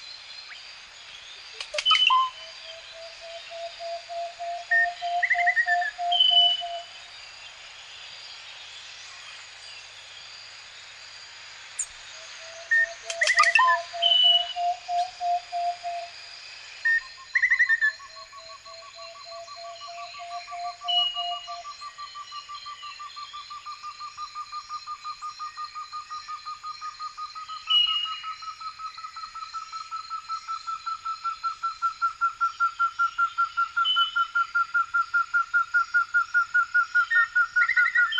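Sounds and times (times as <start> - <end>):
cuckoo in forest: 1.6 - 6.9, 12.3 - 16.1, 16.9 - 38.1.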